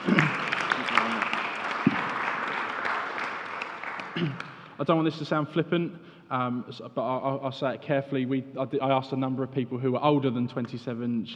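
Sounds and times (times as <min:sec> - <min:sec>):
audience applause: 0:00.0 - 0:04.8
speech: 0:04.2 - 0:11.3.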